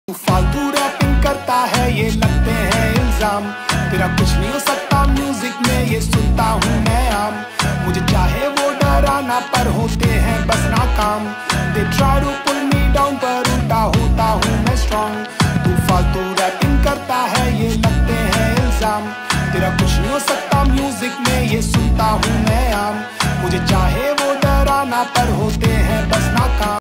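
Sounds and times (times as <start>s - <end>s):
Hindi rap ringtone: 0.1s - 26.7s.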